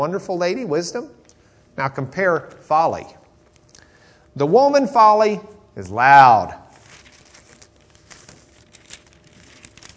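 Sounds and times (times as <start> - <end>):
speech: 0.0 - 1.2, 1.8 - 3.2, 4.4 - 6.6
pages of a torn-up Bible being turned: 6.7 - 9.9.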